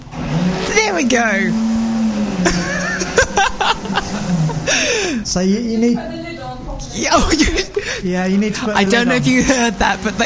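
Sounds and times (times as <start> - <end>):
kitchen blender running: 0.0 - 5.2, 8.7 - 10.2
speech: 1.0 - 1.7, 2.4 - 3.3, 3.9 - 10.2
laughter: 2.4 - 5.3, 7.0 - 10.2.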